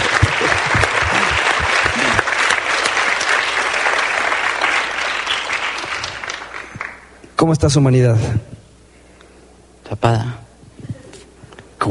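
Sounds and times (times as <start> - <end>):
audience applauding: 0.0 - 7.2
speech: 7.4 - 8.6, 9.9 - 10.4.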